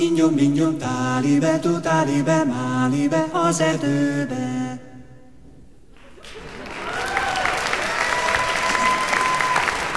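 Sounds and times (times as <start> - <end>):
speech: 0.0 - 4.6
spontaneous applause: 6.0 - 9.9.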